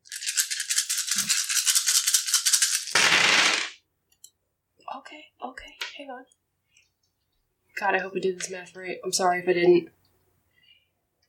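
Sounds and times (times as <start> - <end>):
many dice rolling: 0.0 - 3.8
speech: 5.1 - 6.4, 7.8 - 10.0.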